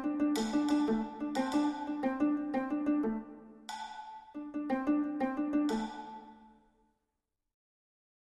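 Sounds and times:
victory music: 0.0 - 6.5.

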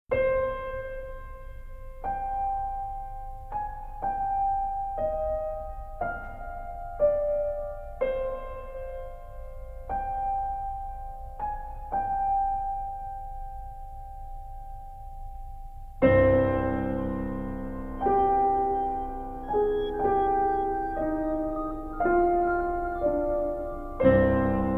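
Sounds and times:
piano: 0.1 - 24.7.

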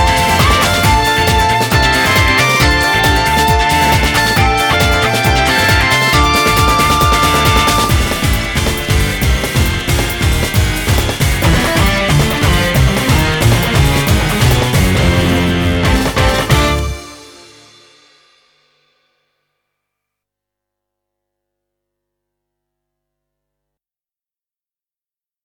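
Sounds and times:
karaoke backing track: 0.0 - 17.8.

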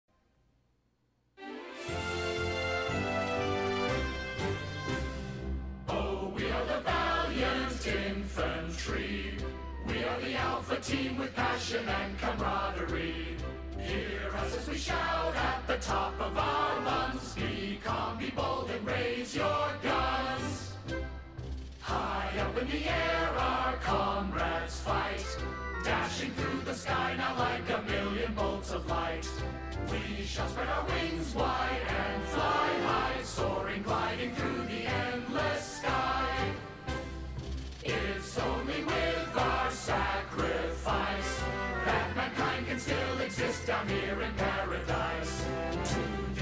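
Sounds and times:
military song in English: 1.4 - 46.4.

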